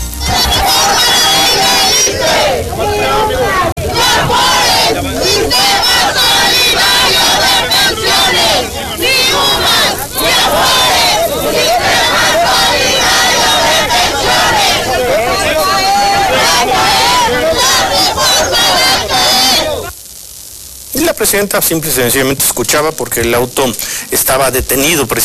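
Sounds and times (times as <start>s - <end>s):
protesting teachers shouting and chanting: 0.2s - 19.9s
speech: 21.3s - 25.2s.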